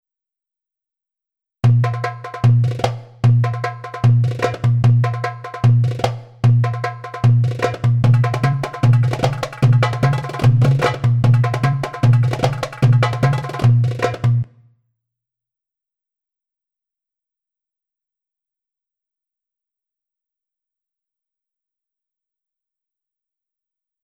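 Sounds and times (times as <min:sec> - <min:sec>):
derbuka drumming: 0:01.6 - 0:14.5.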